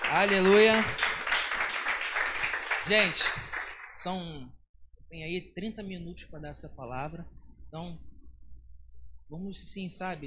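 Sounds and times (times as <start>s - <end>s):
crowd applauding: 0.0s - 4.2s
speech: 0.1s - 1.0s, 2.9s - 8.1s, 9.3s - 10.2s.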